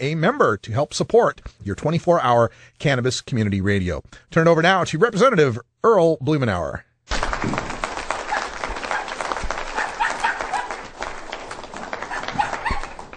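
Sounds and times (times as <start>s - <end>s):
speech: 0.0s - 7.6s
applause: 7.1s - 13.1s
dog barking: 8.3s - 10.8s, 12.0s - 13.0s.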